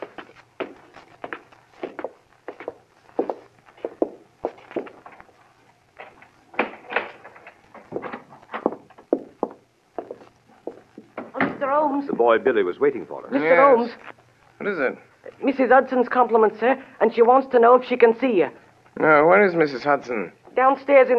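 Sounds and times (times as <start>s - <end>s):
footsteps climbing dark narrow stairs at 221B Baker Street: 0.0s - 5.3s, 7.8s - 11.4s
speech: 12.0s - 21.1s.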